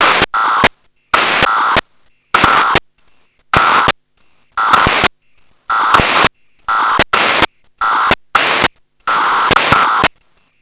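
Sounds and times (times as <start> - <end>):
signal sound: 0.0 - 3.9, 4.6 - 10.1.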